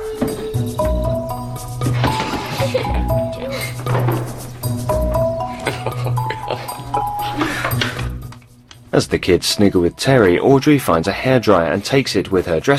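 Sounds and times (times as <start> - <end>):
person crashing around upstairs: 0.1 - 6.4
rummaging through drawers: 0.1 - 6.5
laughter: 1.9 - 4.0, 5.4 - 7.8
speech: 9.0 - 12.7.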